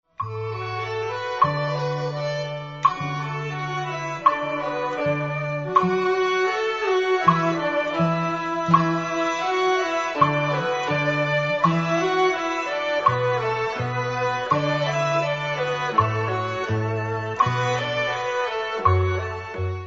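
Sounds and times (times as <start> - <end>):
strings: 0.0 - 19.8.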